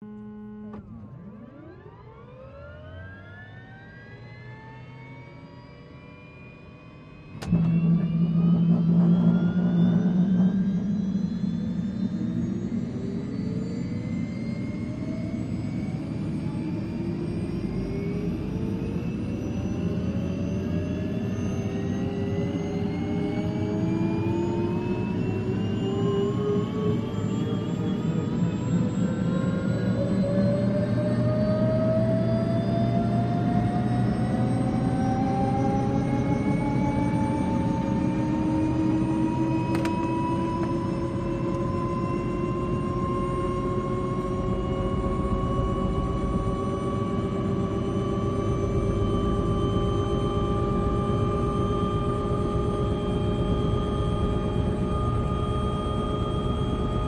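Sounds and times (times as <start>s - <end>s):
Jet Ranger two-stage turbine start-up and idle in cockpit interior: 0.0s - 57.0s.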